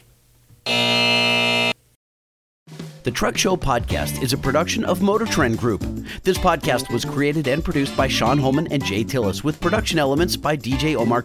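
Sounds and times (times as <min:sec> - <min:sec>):
harsh buzzer: 0:00.6 - 0:01.8
speech: 0:03.0 - 0:11.2.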